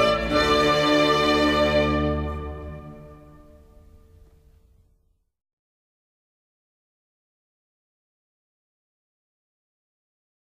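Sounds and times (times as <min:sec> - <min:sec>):
baroque orchestral bourree: 0:00.0 - 0:04.3.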